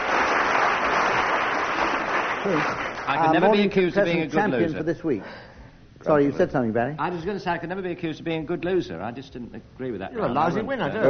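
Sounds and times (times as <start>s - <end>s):
audience applause: 0.0s - 3.4s
speech: 2.4s - 11.0s.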